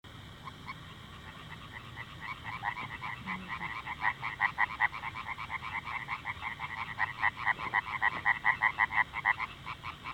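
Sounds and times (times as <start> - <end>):
Oriental tree frog Hyla orientalis calling: 0.3 - 10.1.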